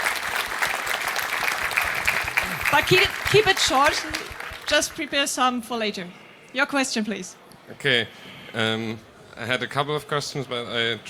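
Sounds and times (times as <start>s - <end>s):
audience applause at a technical talk's question session: 0.0s - 5.4s
speech: 2.7s - 11.0s.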